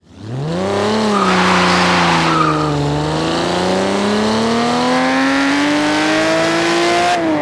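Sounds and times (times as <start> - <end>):
vehicles: 0.0 - 7.4.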